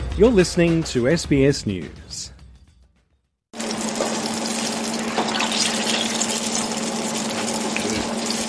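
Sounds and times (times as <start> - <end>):
speech: 0.2 - 2.3
eggplant strips sizzling in oil at Li Ho Fook restaurant in Melbourne: 3.6 - 8.4.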